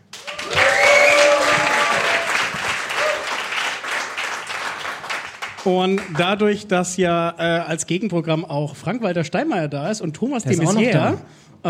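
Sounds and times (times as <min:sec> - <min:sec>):
live crowd applauding: 0:00.0 - 0:06.5
live crowd cheering and whooping: 0:00.2 - 0:03.5
speech: 0:05.6 - 0:11.6.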